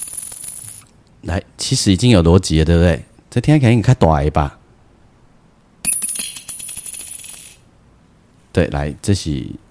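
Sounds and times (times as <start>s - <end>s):
fifty-dollar coin dropping: 0.0s - 0.9s, 5.8s - 7.7s
speech: 1.2s - 4.6s, 8.6s - 9.6s.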